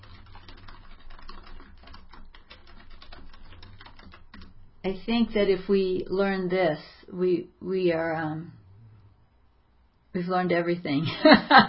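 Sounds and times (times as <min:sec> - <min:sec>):
typing on a computer keyboard: 0:00.0 - 0:06.2
speech: 0:04.8 - 0:08.6, 0:10.2 - 0:11.6.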